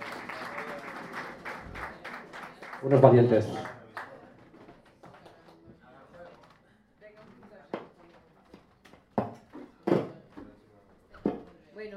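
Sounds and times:
faint audience applause in a café: 0:00.0 - 0:06.5
speech: 0:02.8 - 0:03.8.

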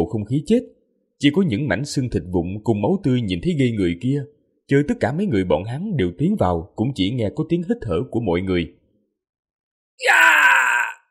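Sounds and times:
speech: 0:00.0 - 0:08.8, 0:10.0 - 0:10.3
anguished, mournful scream: 0:10.0 - 0:11.1.

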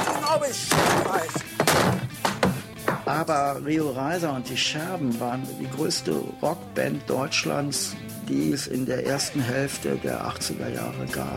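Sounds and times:
hitting and breaking a table: 0:00.0 - 0:03.1
speech: 0:00.4 - 0:01.4, 0:03.1 - 0:11.3.

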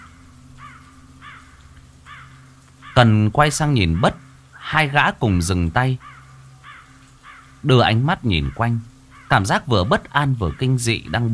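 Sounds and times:
black crows cawing: 0:00.0 - 0:03.2, 0:03.8 - 0:04.6, 0:06.0 - 0:07.7, 0:08.3 - 0:11.3
speech: 0:03.0 - 0:06.2, 0:07.6 - 0:11.3.

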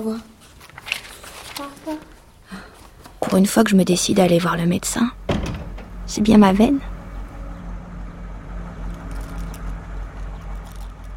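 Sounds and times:
speech: 0:00.0 - 0:00.3, 0:01.6 - 0:02.6, 0:03.2 - 0:05.2, 0:06.1 - 0:06.9
truck engine rumbling in the street: 0:03.9 - 0:11.1.

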